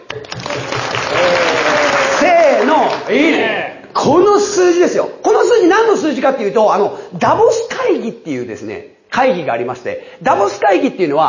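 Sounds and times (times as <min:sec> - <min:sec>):
audience applause: 0:00.0 - 0:03.4
speech: 0:03.1 - 0:11.2.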